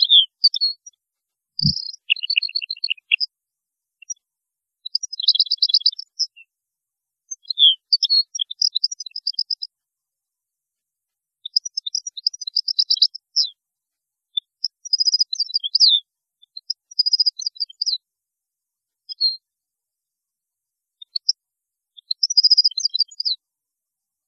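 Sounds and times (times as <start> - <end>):
European goldfinch twittering song: 1.6 - 3.3, 4.9 - 6.4, 7.3 - 9.7, 11.4 - 13.5, 14.6 - 18.0, 22.0 - 23.4.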